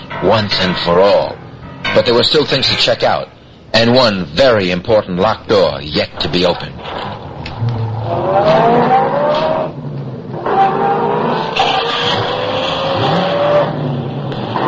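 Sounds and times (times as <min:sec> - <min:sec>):
speech: 0:00.2 - 0:01.4, 0:02.0 - 0:07.2
car accelerating hard in a chase: 0:07.5 - 0:14.6.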